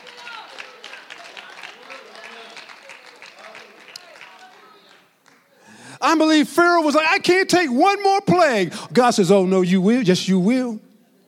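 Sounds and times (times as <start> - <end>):
audience clapping hands: 0.0 - 5.8
speech: 6.1 - 10.9.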